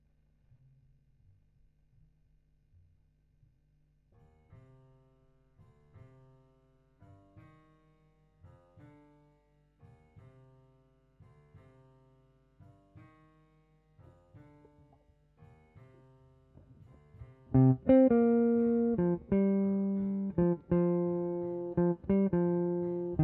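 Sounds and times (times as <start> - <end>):
guitar: 17.5 - 23.2.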